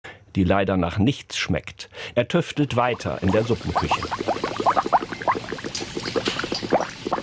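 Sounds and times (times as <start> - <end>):
speech: 0.4 - 4.9
thick liquid bubbling and popping in a kettle: 2.9 - 7.2.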